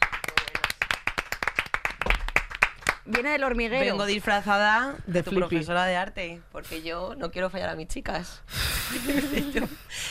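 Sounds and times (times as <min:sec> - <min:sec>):
crowd clapping: 0:00.0 - 0:03.4
speech: 0:03.1 - 0:10.0
laughter: 0:08.9 - 0:09.9.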